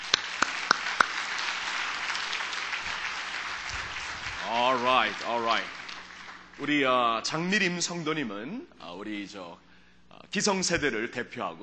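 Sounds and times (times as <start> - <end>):
audience applause welcoming people on stage: 0.0 - 7.0
speech: 4.5 - 5.8, 6.6 - 11.6.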